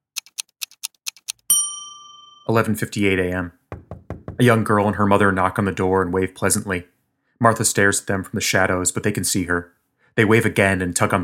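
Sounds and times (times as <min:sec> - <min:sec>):
watch ticking: 0:00.0 - 0:01.5
speech: 0:02.5 - 0:03.6, 0:04.4 - 0:11.2.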